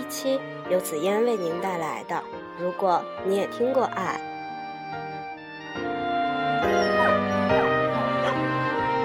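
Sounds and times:
speech: 0:00.1 - 0:04.3
dogs barking: 0:06.6 - 0:08.9.

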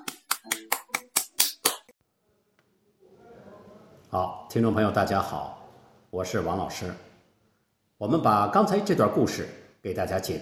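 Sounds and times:
audience clapping: 0:00.0 - 0:01.9
speech: 0:04.1 - 0:07.1, 0:08.0 - 0:10.4.

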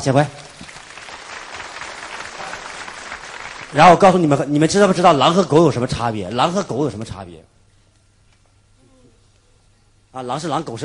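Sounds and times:
speech: 0:00.0 - 0:00.4, 0:03.7 - 0:07.5, 0:10.1 - 0:10.8
audience applause: 0:00.5 - 0:04.4.

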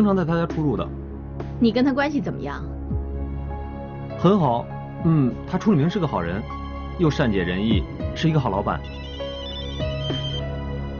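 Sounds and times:
speech: 0:00.0 - 0:01.0, 0:01.6 - 0:02.8, 0:04.2 - 0:09.0
mobile phone ringing: 0:08.8 - 0:10.4.

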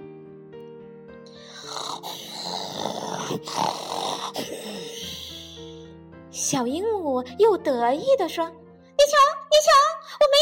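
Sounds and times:
hippo snoring: 0:01.3 - 0:05.8
speech: 0:03.3 - 0:04.6, 0:06.4 - 0:10.4.

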